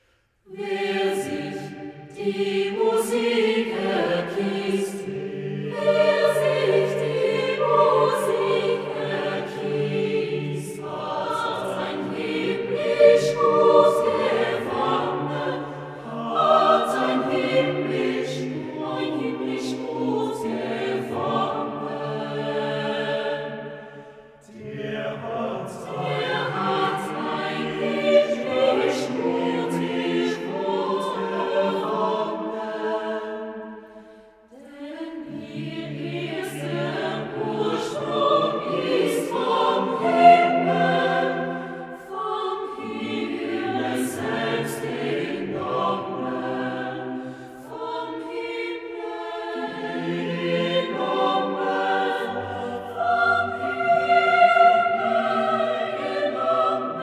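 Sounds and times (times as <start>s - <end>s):
SATB four-part choir singing: 0.0s - 57.0s.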